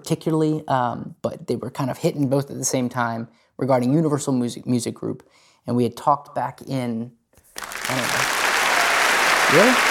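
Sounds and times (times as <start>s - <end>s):
speech: 0.0s - 8.4s, 9.5s - 9.8s
crowd cheer sound effect: 7.6s - 9.8s.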